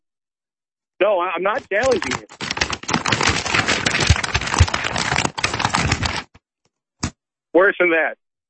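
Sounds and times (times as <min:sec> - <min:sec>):
speech: 0:01.0 - 0:02.4, 0:07.6 - 0:08.2
paper being shaken: 0:01.6 - 0:06.4.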